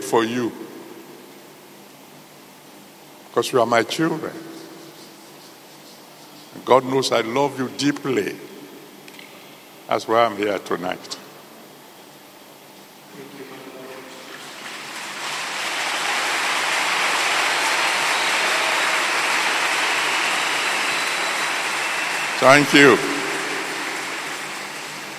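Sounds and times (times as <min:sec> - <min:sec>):
speech: 0:00.1 - 0:00.6, 0:03.4 - 0:04.5, 0:06.6 - 0:08.5, 0:09.9 - 0:11.2, 0:22.4 - 0:23.1
crowd clapping: 0:14.3 - 0:25.1.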